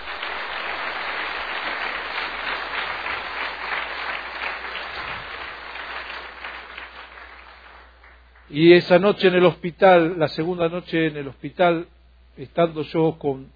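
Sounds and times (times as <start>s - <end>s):
applause: 0.0s - 8.6s
speech: 8.5s - 13.5s.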